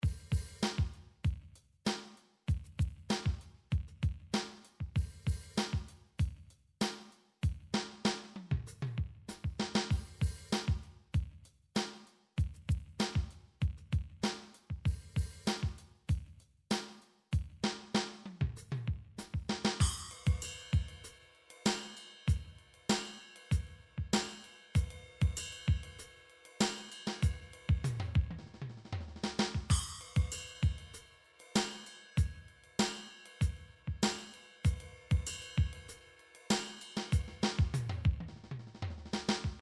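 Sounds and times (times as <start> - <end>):
funk MIDI drum beat: 0.0 - 39.6.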